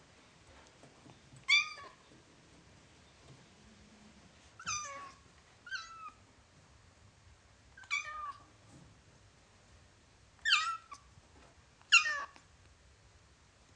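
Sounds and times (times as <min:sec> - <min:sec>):
kitten meowing: 0:04.6 - 0:06.2, 0:07.8 - 0:08.4, 0:10.4 - 0:11.0, 0:11.9 - 0:12.4.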